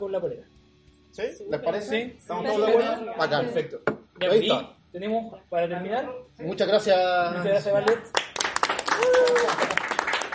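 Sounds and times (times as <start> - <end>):
speech: 0.0 - 8.3
audience applause: 7.9 - 10.3
person cheering: 8.8 - 9.8.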